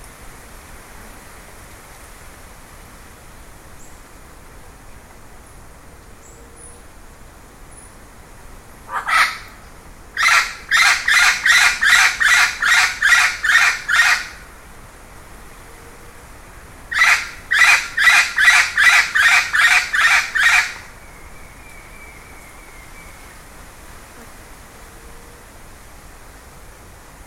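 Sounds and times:
bird rasping squawks: 8.9s - 9.5s, 10.2s - 14.4s, 16.9s - 20.8s.

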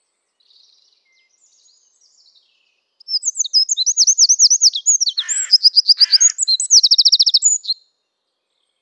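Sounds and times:
Eurasian wren song, Troglodytes troglodytes: 3.1s - 7.8s.

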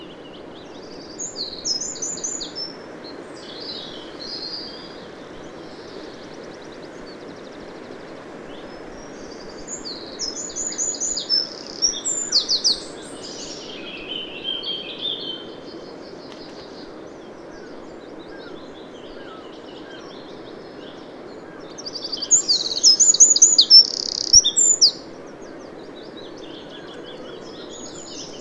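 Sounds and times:
Eurasian wren song: 0.0s - 28.4s.

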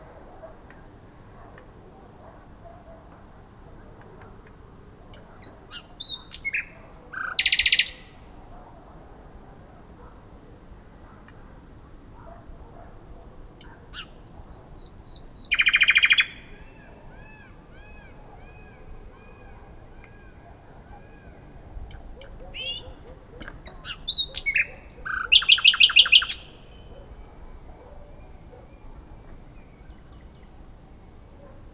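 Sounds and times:
common nightingale song: 5.1s - 11.4s, 13.6s - 31.7s.

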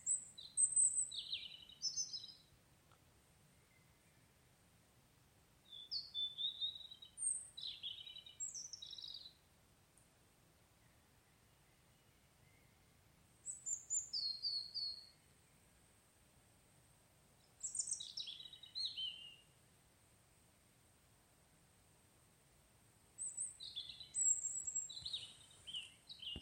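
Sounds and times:
European robin song: 0.0s - 2.6s, 5.6s - 9.5s, 10.8s - 15.7s, 17.4s - 19.6s, 23.2s - 26.4s.

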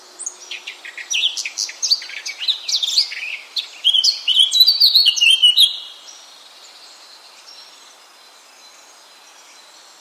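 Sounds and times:
Sylvia atricapilla singing: 0.2s - 5.9s.

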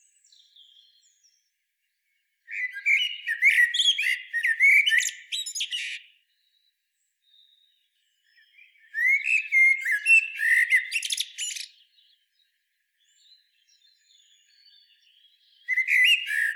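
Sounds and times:
common blackbird singing: 0.0s - 16.5s.

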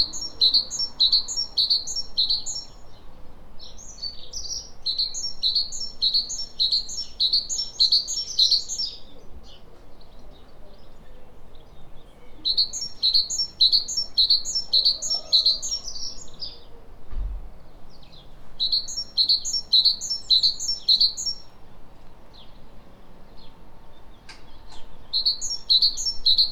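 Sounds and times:
speech: 0.0s - 2.0s
great tit singing two-note phrases: 0.0s - 16.7s, 17.9s - 21.6s, 22.4s - 26.5s
faint thump: 17.0s - 17.6s.

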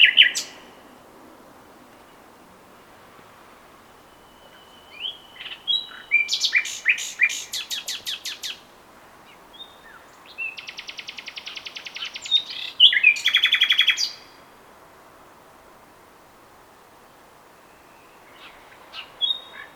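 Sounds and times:
common nightingale Luscinia megarhynchos singing: 0.0s - 0.7s, 3.9s - 14.4s, 17.5s - 19.7s.

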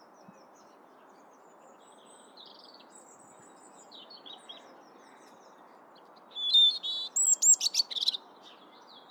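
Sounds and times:
European robin Erithacus rubecula singing: 6.4s - 8.2s.

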